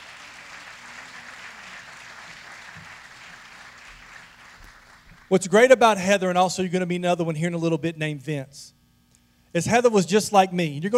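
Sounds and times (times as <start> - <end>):
audience clapping: 0.0 - 5.5
speech: 5.3 - 8.8, 9.5 - 10.9.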